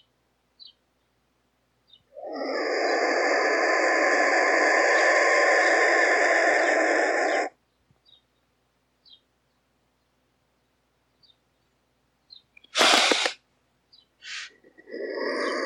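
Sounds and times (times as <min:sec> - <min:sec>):
black vulture calling: 0:02.1 - 0:07.6, 0:14.2 - 0:15.6.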